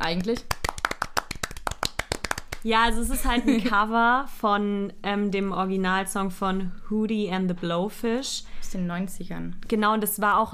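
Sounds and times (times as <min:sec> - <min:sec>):
speech: 0:00.0 - 0:00.6, 0:02.6 - 0:10.5
people clapping: 0:00.0 - 0:02.9
laughter: 0:03.1 - 0:03.8.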